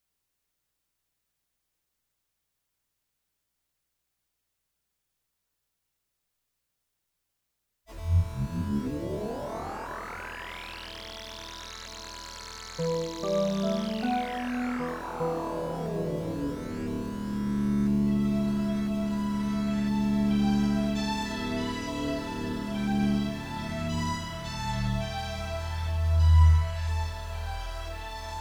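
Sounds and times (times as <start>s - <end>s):
instrumental music: 7.9s - 28.3s.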